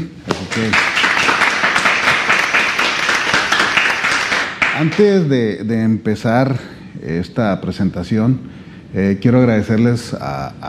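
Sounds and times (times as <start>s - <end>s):
speech: 0.0s - 1.1s, 4.8s - 10.6s
audience applause: 0.5s - 5.1s.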